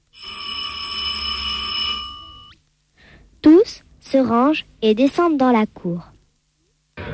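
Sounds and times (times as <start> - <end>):
school bell ringing: 0.1 - 2.6
speech: 4.1 - 6.1.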